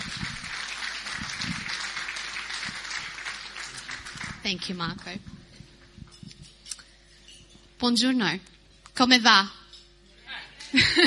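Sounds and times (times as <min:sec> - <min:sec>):
crowd clapping: 0:00.0 - 0:05.2
speech: 0:04.4 - 0:05.4, 0:07.8 - 0:09.6, 0:10.7 - 0:11.0
laughter: 0:10.7 - 0:11.0.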